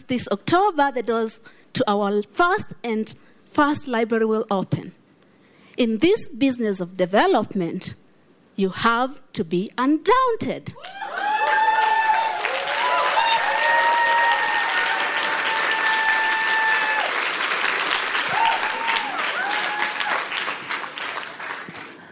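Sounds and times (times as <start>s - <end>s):
speech: 0.1s - 5.0s, 5.8s - 8.0s, 8.6s - 11.0s
high whoops and cheers: 10.8s - 17.2s, 18.2s - 20.5s
audience applause: 10.8s - 22.1s.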